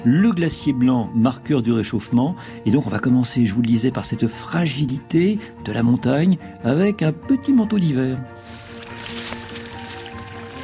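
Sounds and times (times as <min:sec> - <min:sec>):
speech: 0:00.0 - 0:08.6
small trickle of mountain water in the Hautes-Alpes: 0:08.5 - 0:10.6.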